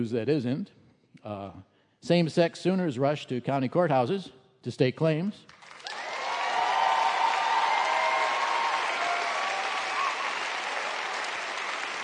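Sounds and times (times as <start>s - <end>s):
speech: 0.0s - 5.6s
audience applause: 5.6s - 12.0s
scattered cheers: 5.8s - 12.0s.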